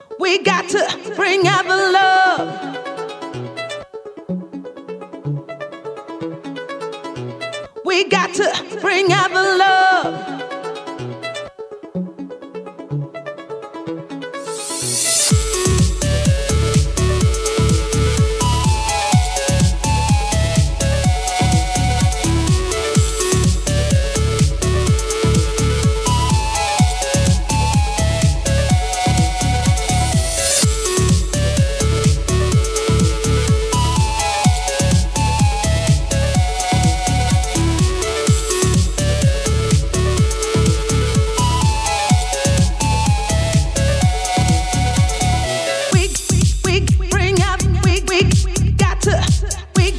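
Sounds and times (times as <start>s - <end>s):
happy music: 0.0s - 49.9s.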